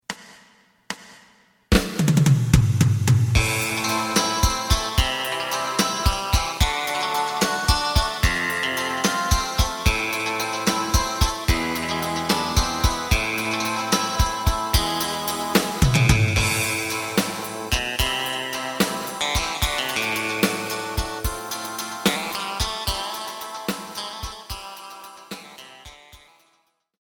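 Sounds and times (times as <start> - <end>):
bass: 2.5 - 23.9.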